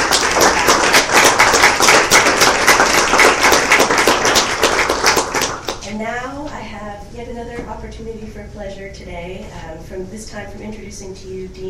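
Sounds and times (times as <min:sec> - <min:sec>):
crowd applauding: 0:00.0 - 0:05.8
speech: 0:07.8 - 0:11.6.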